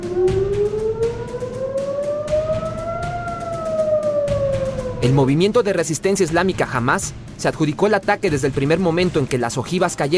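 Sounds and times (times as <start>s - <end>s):
air-raid sirens wailing: 0.0s - 5.8s
speech: 5.0s - 10.1s.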